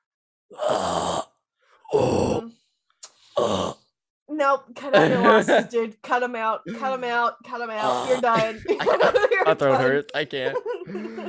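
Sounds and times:
guttural deathcore scream: 0:00.6 - 0:01.3, 0:01.9 - 0:02.5
speech: 0:04.5 - 0:11.2
laughter: 0:04.9 - 0:05.7, 0:07.8 - 0:11.2.

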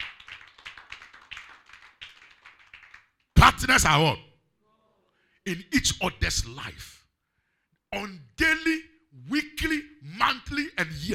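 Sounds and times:
audience clapping: 0:00.0 - 0:03.4
speech: 0:03.6 - 0:04.3, 0:05.5 - 0:07.0, 0:07.9 - 0:11.1.

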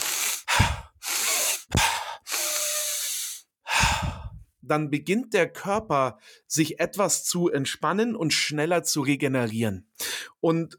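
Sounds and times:
exhales through the mouth: 0:00.0 - 0:04.4
sniffing inhales through the nose: 0:00.0 - 0:04.4
speech: 0:04.7 - 0:10.7.

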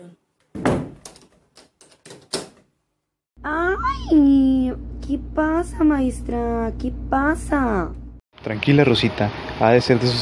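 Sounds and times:
classroom doors closed by a teacher: 0:00.5 - 0:01.1
speech: 0:03.4 - 0:10.2.

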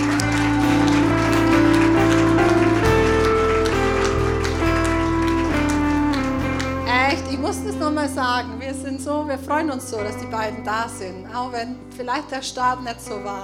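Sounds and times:
audience applause: 0:00.0 - 0:07.1
speech: 0:08.4 - 0:13.4.

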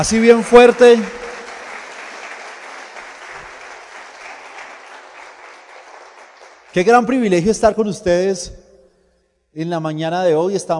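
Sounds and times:
speech: 0:00.0 - 0:01.2, 0:06.8 - 0:08.6, 0:09.5 - 0:10.7
audience applause: 0:00.0 - 0:06.9.

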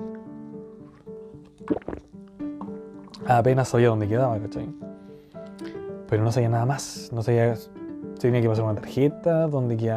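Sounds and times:
sipping a Pepsi: 0:01.6 - 0:02.1
speech: 0:01.7 - 0:02.1, 0:03.2 - 0:04.8, 0:06.1 - 0:09.9.

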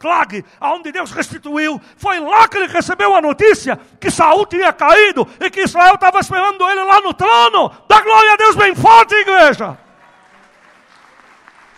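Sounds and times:
speech: 0:00.0 - 0:09.8
audience applauding: 0:09.7 - 0:11.7.

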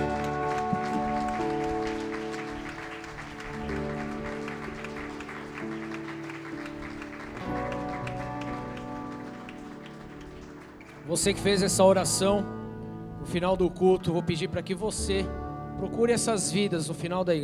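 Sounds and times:
audience applause: 0:00.0 - 0:11.3
speech: 0:11.1 - 0:12.6, 0:13.3 - 0:17.4.

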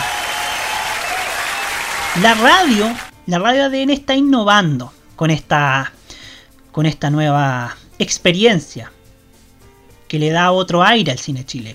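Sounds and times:
crowd applauding: 0:00.0 - 0:03.1
speech: 0:02.1 - 0:06.0, 0:06.8 - 0:09.0, 0:10.1 - 0:11.7.

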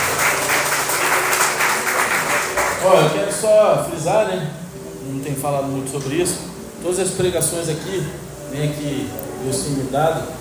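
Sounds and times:
audience applauding: 0:00.0 - 0:03.4
speech: 0:02.8 - 0:10.3.

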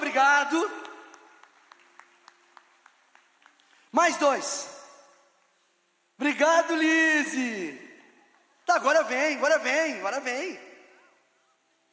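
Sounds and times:
rhythmic clapping: 0:00.5 - 0:04.0
audience applause: 0:00.8 - 0:04.0
speech: 0:03.9 - 0:04.8, 0:06.2 - 0:07.8, 0:08.7 - 0:10.7.

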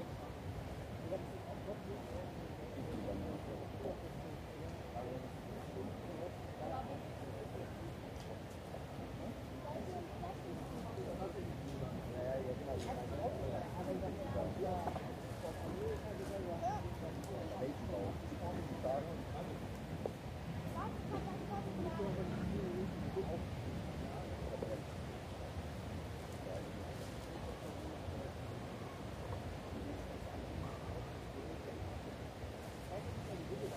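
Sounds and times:
crowd murmur in the Englischer Garten in Munich: 0:00.0 - 0:33.7.

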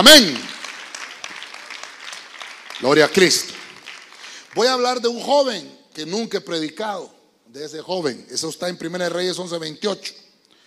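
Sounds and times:
speech: 0:00.0 - 0:00.4, 0:02.8 - 0:03.6, 0:04.5 - 0:10.2
clapping: 0:00.2 - 0:04.8.

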